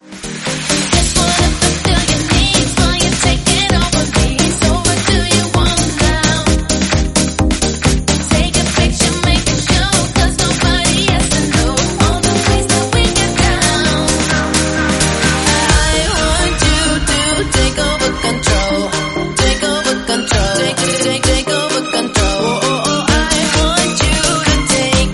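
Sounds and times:
pumped electronic beat in C minor: 0:00.0 - 0:25.1.

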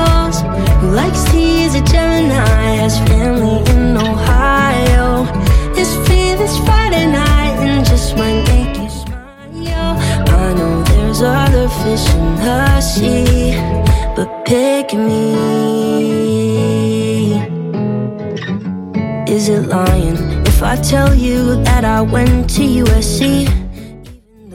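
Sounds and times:
pop music: 0:00.0 - 0:18.5, 0:19.3 - 0:24.5.

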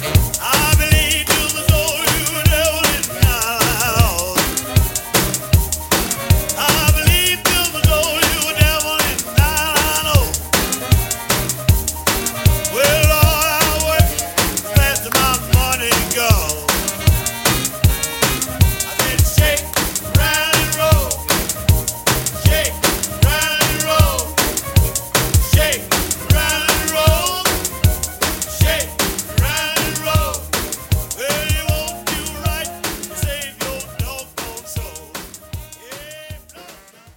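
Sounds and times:
1950s blues drum beat: 0:00.0 - 0:37.1.

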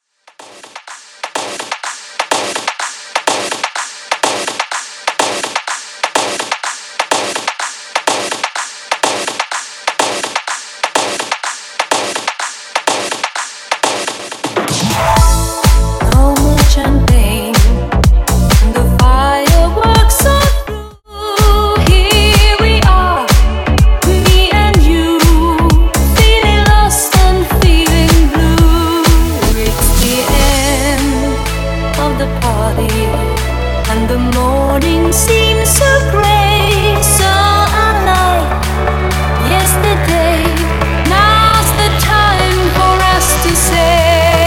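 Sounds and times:
dance music: 0:00.3 - 0:20.8, 0:21.4 - 0:44.4.

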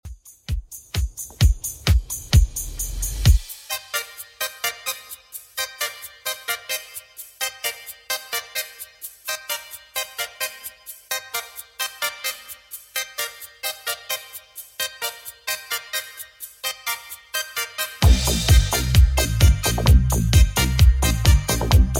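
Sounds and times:
80s style beat: 0:00.0 - 0:21.9.

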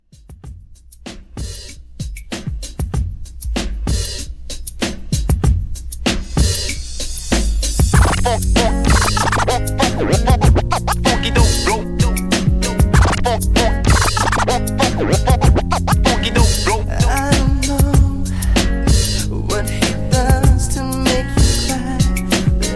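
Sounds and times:
drum beat: 0:00.1 - 0:06.8, 0:07.4 - 0:20.8, 0:21.4 - 0:22.7
record scratching: 0:07.9 - 0:16.8.

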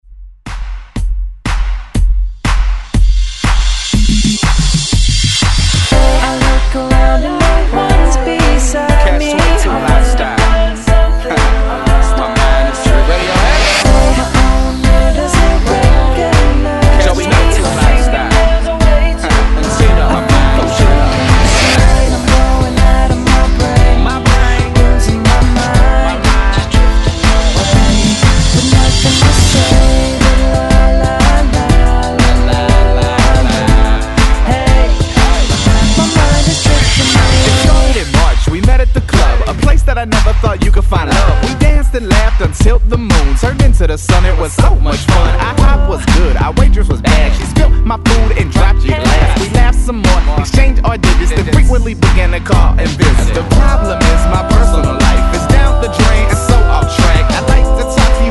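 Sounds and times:
drum beat at 121 BPM: 0:00.3 - 0:58.3.

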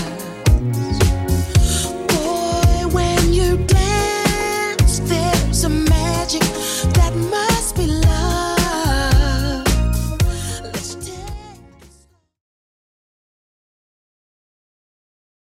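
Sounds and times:
90s drum beat at 111 bpm: 0:00.0 - 0:09.4.

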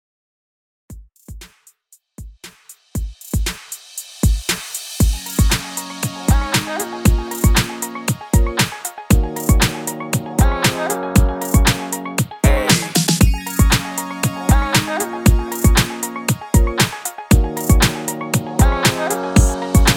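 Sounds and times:
bootymix dance mix: 0:04.2 - 0:19.9.

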